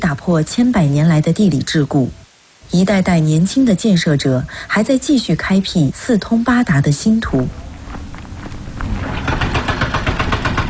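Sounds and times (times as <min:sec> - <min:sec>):
speech: 0:00.1 - 0:07.6
large construction machinery engine rumble: 0:07.3 - 0:10.6
fast regular rhythmic clatter of heavy machinery: 0:08.8 - 0:10.6.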